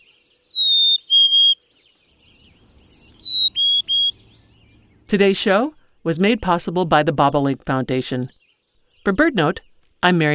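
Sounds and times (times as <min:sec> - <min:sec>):
chickadee call: 0:00.5 - 0:01.6, 0:02.7 - 0:04.3
speech: 0:05.1 - 0:08.4, 0:09.0 - 0:10.3.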